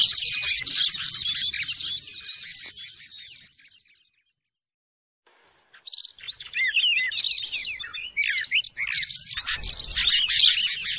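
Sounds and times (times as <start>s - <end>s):
bar-winged prinia chirping: 0.0s - 4.6s, 5.3s - 10.9s.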